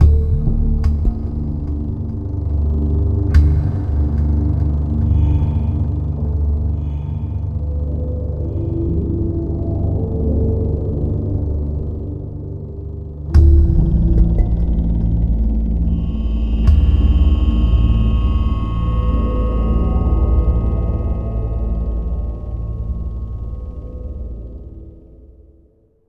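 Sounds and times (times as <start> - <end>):
indoor ambience: 0.0 - 26.0.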